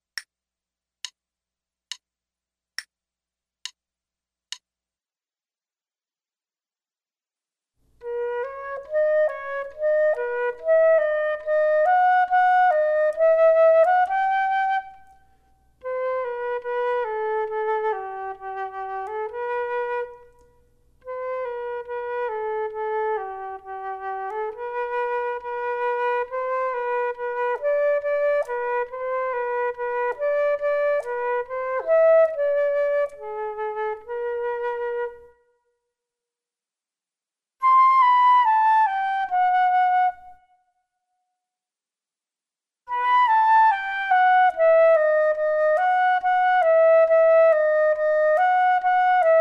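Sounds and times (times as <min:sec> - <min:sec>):
flute duet: 0:08.0 - 0:35.7, 0:37.6 - 0:40.8, 0:42.9 - 0:49.3.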